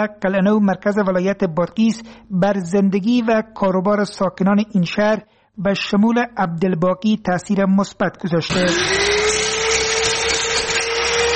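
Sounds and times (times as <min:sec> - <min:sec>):
speech: 0:00.0 - 0:09.8
electric saw cutting wood in a carpentry workshop in Qala-e-Naw, Badghis: 0:08.5 - 0:11.3.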